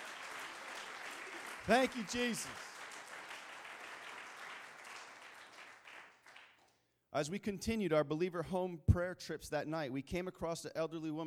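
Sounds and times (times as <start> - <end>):
crowd applause: 0.0 - 6.6
speech: 1.6 - 2.7, 7.1 - 11.2.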